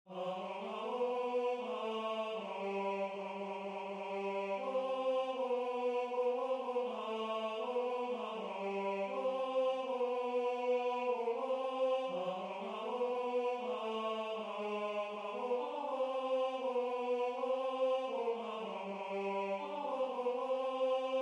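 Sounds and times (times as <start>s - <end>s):
tenor singing: 0.1s - 21.2s.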